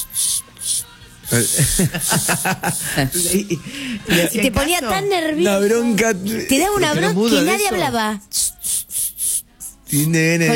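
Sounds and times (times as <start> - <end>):
person imitating a shushing hiss: 0.0 - 4.3, 8.3 - 10.5
people talking and laughing: 0.6 - 8.8
speech: 1.3 - 8.4, 9.9 - 10.5.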